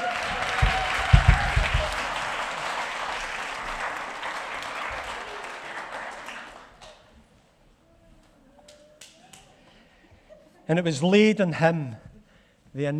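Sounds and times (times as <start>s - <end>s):
audience applause: 0.0s - 7.3s
speech: 10.7s - 12.1s, 12.7s - 12.9s.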